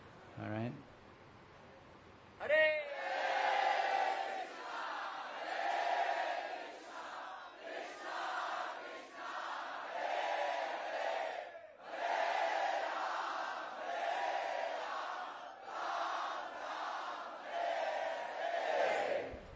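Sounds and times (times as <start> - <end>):
large crowd shouting together in rhythmic chant: 2.5 - 19.4.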